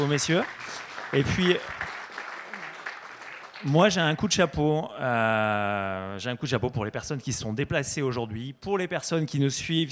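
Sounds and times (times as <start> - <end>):
speech: 0.0 - 1.9, 3.6 - 9.8
audience applause: 0.0 - 4.3.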